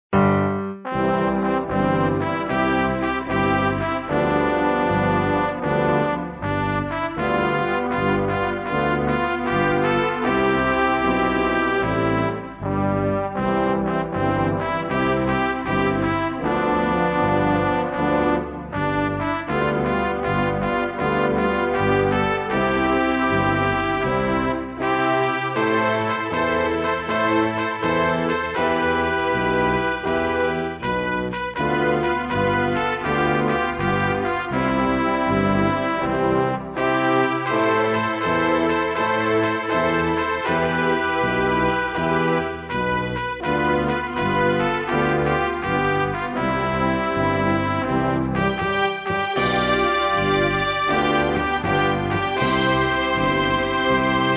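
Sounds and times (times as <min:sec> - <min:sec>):
national anthem: 0:00.2 - 0:54.3.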